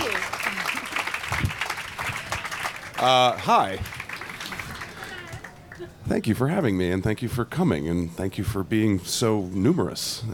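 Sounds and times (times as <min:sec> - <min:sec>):
audience applause welcoming a guest onto a stage: 0:00.0 - 0:05.9
speech: 0:03.0 - 0:04.0, 0:05.8 - 0:10.3.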